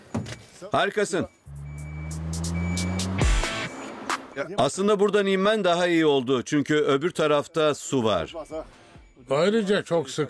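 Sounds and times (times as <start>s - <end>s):
speech: 0.6s - 1.4s, 4.4s - 10.2s
truck tyres straining: 1.5s - 4.2s.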